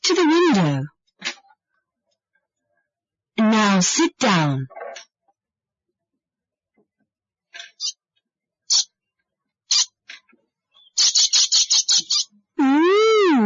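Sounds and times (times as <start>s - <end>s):
speech: 0.1s - 0.9s, 3.6s - 5.1s
bird chirping: 7.7s - 7.9s, 8.7s - 8.9s, 9.7s - 9.9s, 10.7s - 12.8s.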